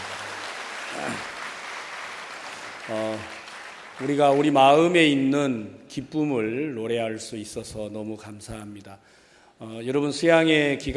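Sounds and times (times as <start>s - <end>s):
crowd applause: 0.0s - 4.9s
speech: 0.9s - 1.4s, 2.9s - 3.4s, 4.0s - 10.9s.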